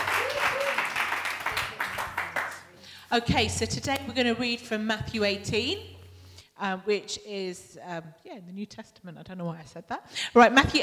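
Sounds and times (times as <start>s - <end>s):
round of applause: 0.0s - 2.8s
speech: 3.1s - 5.9s, 6.6s - 10.8s.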